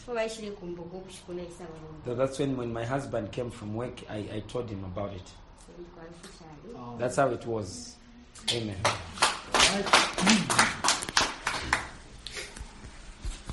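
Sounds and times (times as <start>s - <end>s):
speech: 0.1s - 10.8s
audience clapping: 8.5s - 12.1s.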